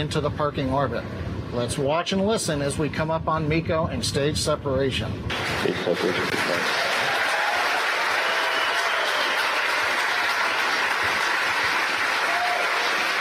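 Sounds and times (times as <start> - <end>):
speech: 0.0 - 6.9
applause and cheering from mission control crowd in Hawthorne: 5.3 - 13.1.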